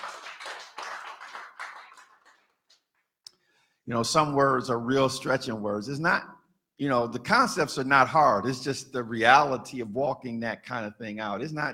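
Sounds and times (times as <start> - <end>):
audience clapping: 0.0 - 3.0
speech: 3.9 - 11.7.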